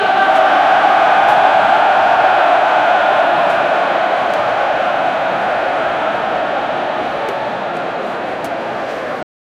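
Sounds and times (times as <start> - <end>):
stadium crowd during a soccer match: 0.0 - 9.3.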